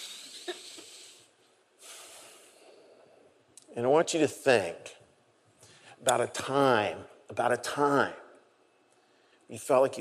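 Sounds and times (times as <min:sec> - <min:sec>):
deep breath in a guided breathing exercise: 0:00.0 - 0:03.4
speech: 0:03.8 - 0:05.0, 0:06.0 - 0:08.2, 0:09.5 - 0:10.0.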